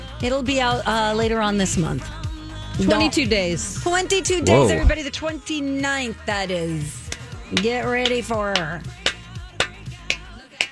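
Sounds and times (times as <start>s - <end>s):
speech: 0.2s - 2.2s, 2.8s - 9.0s
hand clapping: 7.1s - 10.6s.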